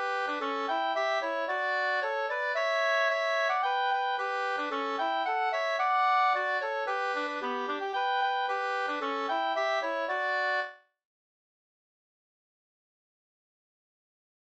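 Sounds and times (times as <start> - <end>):
polka onestep music: 0.0 - 10.8.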